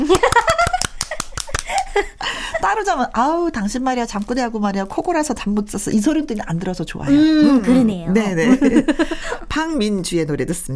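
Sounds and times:
people clapping: 0.0s - 2.0s
speech: 2.7s - 10.7s.

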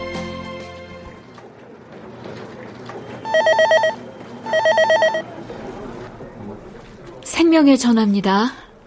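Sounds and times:
telephone ringing with electronic trilling tones: 2.9s - 5.5s
speech: 7.7s - 8.6s.

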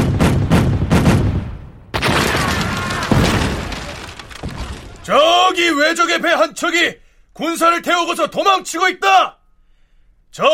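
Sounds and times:
cannon firing: 0.0s - 5.2s
crackling rumble: 2.0s - 5.2s
speech: 5.1s - 9.4s, 10.3s - 10.5s.

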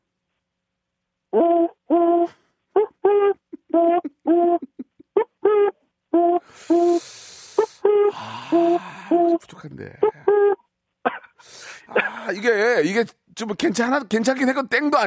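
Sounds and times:
person imitating oriental turtle dove call: 1.4s - 10.6s
speech: 12.4s - 15.0s.

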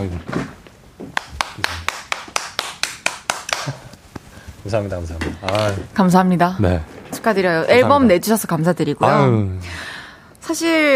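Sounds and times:
speech: 0.0s - 0.5s, 4.7s - 9.8s, 10.5s - 10.9s
one person clapping hands: 1.1s - 3.9s.

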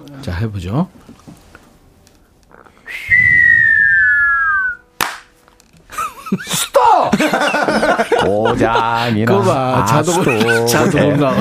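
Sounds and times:
speech: 0.2s - 1.3s, 6.3s - 11.3s
person whistling an imitation of fireworks: 2.9s - 4.9s
laughter: 5.9s - 11.3s.

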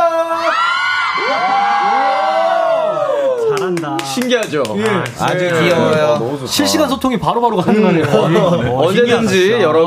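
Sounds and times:
crowd of fans cheering and shouting outside: 0.0s - 3.8s
speech: 4.2s - 9.8s.

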